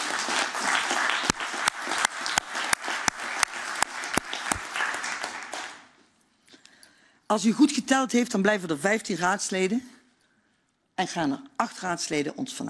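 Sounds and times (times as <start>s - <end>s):
audience applause: 0.0s - 5.9s
sharp louder claps: 0.0s - 6.0s
speech: 7.3s - 10.0s, 11.0s - 12.6s.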